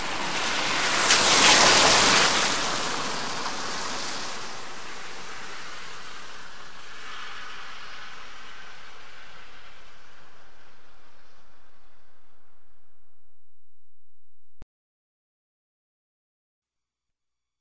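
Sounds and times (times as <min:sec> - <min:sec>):
wet vehicles passing fast by a puddle: 0:00.0 - 0:12.0.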